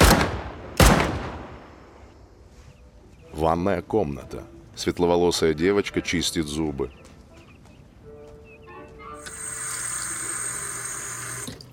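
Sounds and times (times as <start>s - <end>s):
pistol shots fired at police officers: 0.0s - 1.6s
speech: 3.4s - 7.0s.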